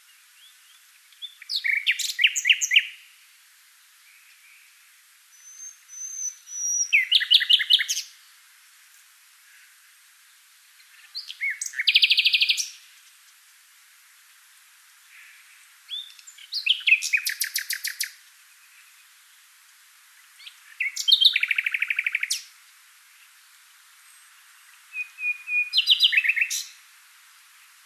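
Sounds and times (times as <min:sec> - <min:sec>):
Common nightingale singing: 0:00.0 - 0:03.1, 0:04.0 - 0:08.4, 0:10.8 - 0:12.8, 0:15.2 - 0:19.4, 0:20.3 - 0:22.5, 0:24.0 - 0:26.8.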